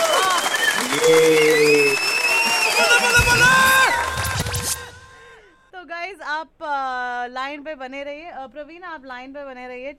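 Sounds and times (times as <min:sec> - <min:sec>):
applause sound effect on a radio phone-in quiz: 0:00.0 - 0:05.1
speech: 0:01.1 - 0:01.8, 0:05.8 - 0:09.9.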